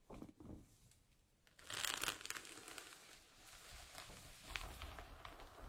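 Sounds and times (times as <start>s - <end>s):
bright steady rustle: 1.4s - 5.6s
hair being combed: 1.5s - 5.6s.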